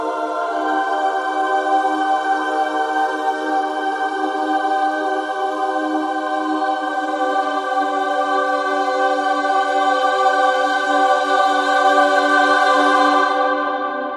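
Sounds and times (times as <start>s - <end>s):
choir singing: 0.0s - 14.1s.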